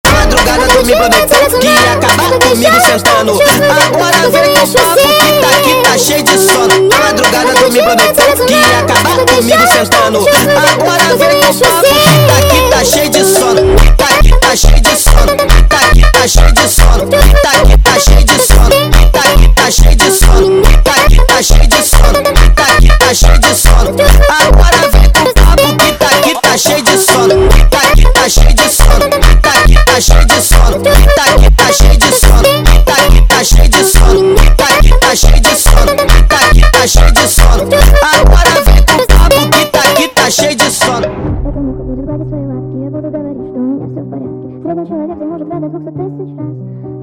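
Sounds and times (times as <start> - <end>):
sped up funk music: 0.0 - 41.1.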